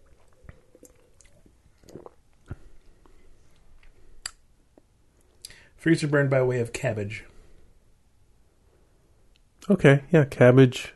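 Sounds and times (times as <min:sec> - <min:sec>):
person sipping drink: 0:00.0 - 0:04.4
speech: 0:05.8 - 0:07.3, 0:09.7 - 0:10.9.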